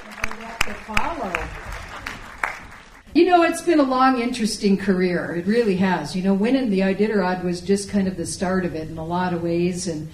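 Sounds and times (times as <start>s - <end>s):
theater audience applause: 0.0s - 3.0s
speech: 0.7s - 1.8s, 3.1s - 10.1s.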